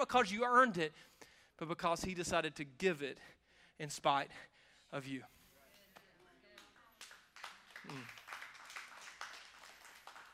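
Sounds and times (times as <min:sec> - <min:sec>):
speech: 0:00.0 - 0:05.4, 0:07.8 - 0:08.2
partial audience clapping: 0:05.8 - 0:10.3.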